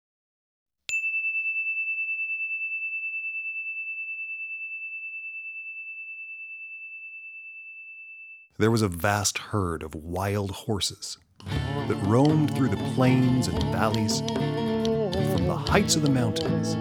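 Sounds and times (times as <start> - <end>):
meditation bell ringing: 0.9 - 8.5
speech: 8.6 - 14.7, 15.4 - 16.7.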